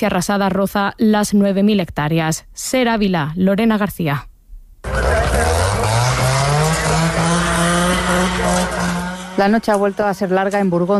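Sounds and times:
speech: 0.0s - 4.3s, 9.4s - 10.9s
chainsaw cutting during wildfire operations: 4.8s - 9.9s.

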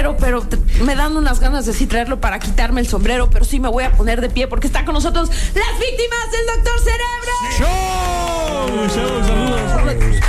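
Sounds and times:
speech: 0.2s - 10.2s
audience applause: 7.5s - 10.2s.

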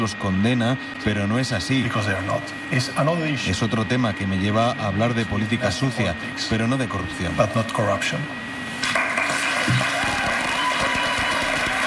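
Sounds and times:
speech: 0.0s - 8.5s
students applauding at a talk: 8.9s - 11.8s.

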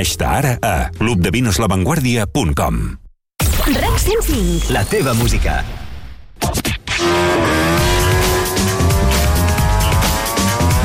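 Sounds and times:
speech: 0.0s - 3.0s, 3.7s - 5.8s
MotoGP racing motorcycle engine revving: 7.0s - 10.8s.

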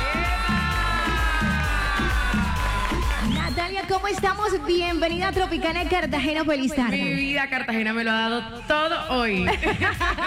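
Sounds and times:
audience cheering, whooping and applauding: 0.0s - 4.6s
loud rhythmic music with pulsing beat: 0.0s - 7.5s, 8.5s - 10.2s
speech: 4.1s - 10.2s
laughter: 9.4s - 10.2s.

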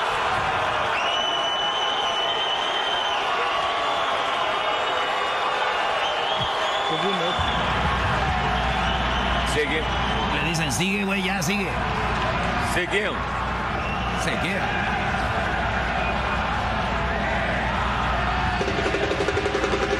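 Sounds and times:
stadium crowd cheering: 0.0s - 19.9s
shrill whistles from crowd: 0.9s - 5.1s, 6.0s - 7.7s, 8.5s - 10.8s, 13.8s - 14.3s
speech: 6.9s - 7.6s, 9.5s - 13.4s, 14.2s - 15.0s.

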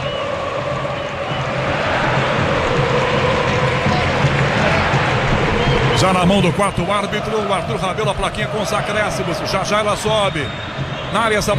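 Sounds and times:
football fans cheering in arena: 0.0s - 11.5s
speech: 6.0s - 11.5s.

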